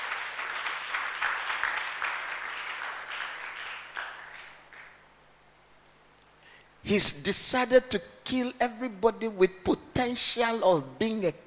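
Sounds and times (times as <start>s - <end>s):
audience applause: 0.0s - 5.0s
speech: 6.9s - 11.4s.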